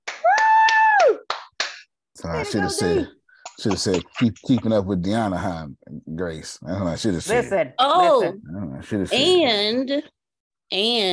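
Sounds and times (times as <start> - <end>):
slow hand claps: 0.0 - 1.9
person letting out a long whoop: 0.2 - 1.2
speech: 2.2 - 11.1.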